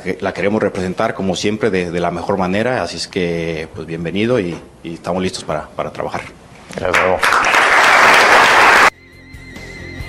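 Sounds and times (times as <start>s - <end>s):
speech: 0.0s - 7.6s
squad applauding: 6.8s - 9.0s.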